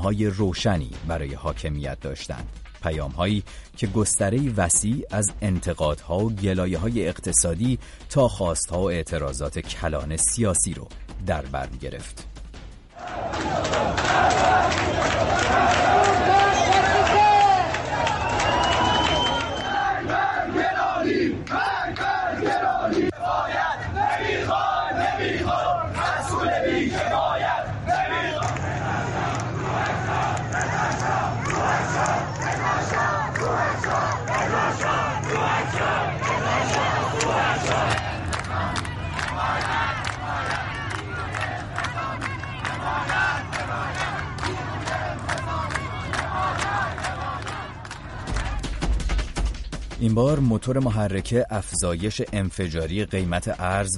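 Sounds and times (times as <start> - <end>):
speech: 0.0 - 12.3, 50.0 - 53.9
protest crowd shouting and chanting: 12.9 - 49.1.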